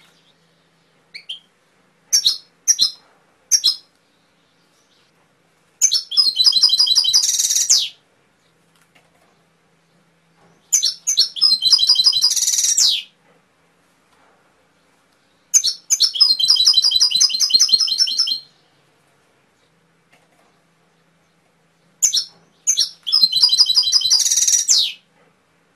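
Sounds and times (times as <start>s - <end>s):
canary singing: 0.0s - 5.1s, 5.8s - 8.0s, 10.6s - 13.2s, 15.2s - 18.8s, 21.0s - 25.1s.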